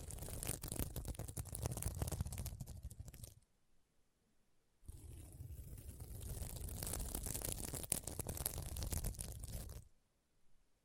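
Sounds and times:
scratching across a sequin mermaid pillow: 0.0s - 3.4s, 4.9s - 9.9s.

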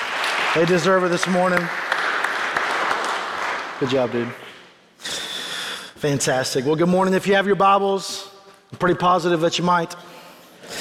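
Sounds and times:
audience clapping: 0.0s - 4.8s
speech: 0.5s - 1.8s, 3.8s - 4.4s, 6.0s - 10.1s.

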